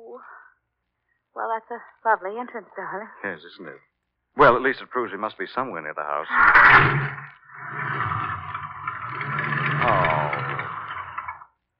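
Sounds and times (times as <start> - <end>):
speech: 1.4 - 7.8
car engine revving stuck in mud: 6.4 - 11.4.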